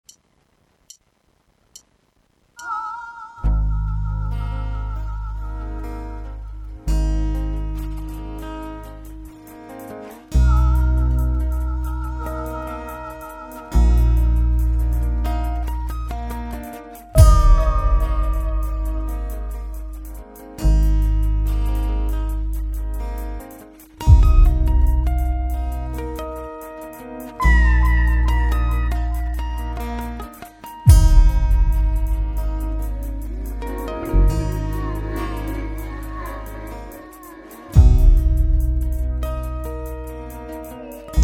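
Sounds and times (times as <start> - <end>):
autumn ambience: 4.2 - 41.2.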